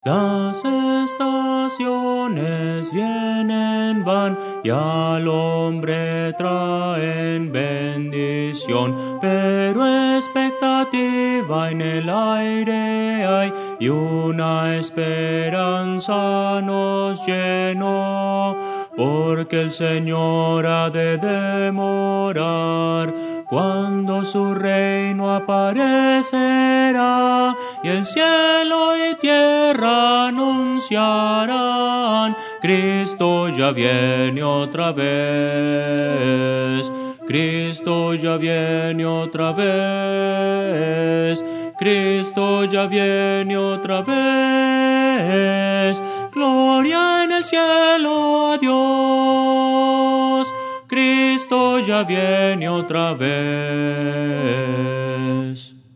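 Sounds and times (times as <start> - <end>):
soprano singing: 0.0 - 55.8.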